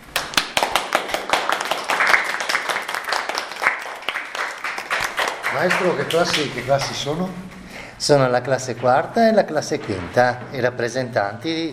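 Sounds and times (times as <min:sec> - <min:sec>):
applause, hands clapping: 0:00.0 - 0:07.1
speech: 0:05.6 - 0:11.7.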